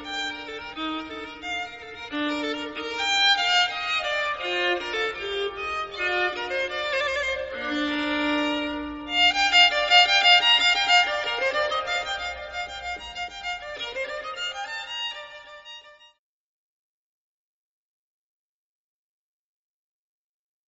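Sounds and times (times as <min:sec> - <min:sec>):
classical fantasia: 0:00.0 - 0:15.8.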